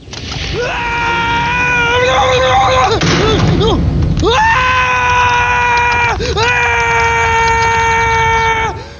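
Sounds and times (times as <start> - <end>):
person screaming: 0.6 - 8.8.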